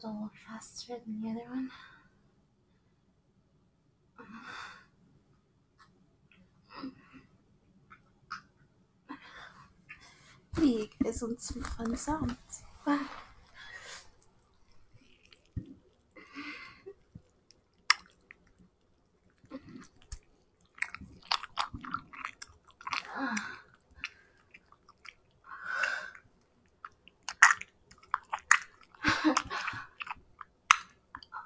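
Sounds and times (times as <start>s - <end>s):
speech: 0.0s - 2.0s, 10.6s - 13.2s
chewing and biting on ice cream: 14.2s - 16.2s, 17.0s - 25.5s, 26.1s - 31.3s.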